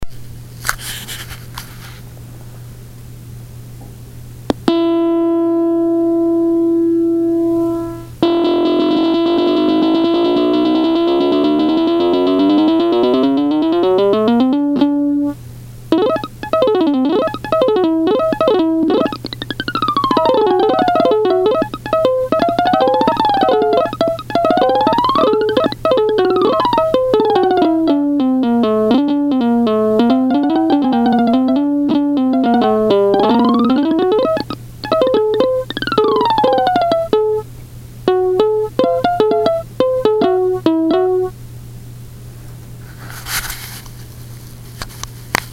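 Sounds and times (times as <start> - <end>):
plucked note: 4.7 - 37.4, 38.1 - 41.4.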